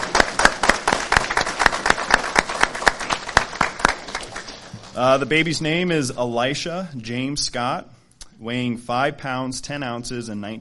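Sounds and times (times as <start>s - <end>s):
audience applauding: 0.0s - 5.4s
speech: 5.0s - 10.5s.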